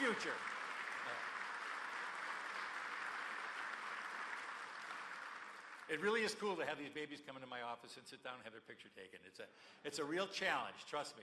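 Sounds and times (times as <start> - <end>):
audience applause: 0.0 - 6.4
speech: 0.2 - 1.3, 5.9 - 11.2.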